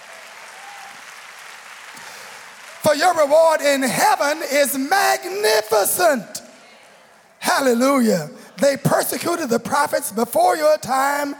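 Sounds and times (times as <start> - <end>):
audience clapping hands: 0.0 - 3.9
speech: 2.8 - 6.4, 7.6 - 11.3.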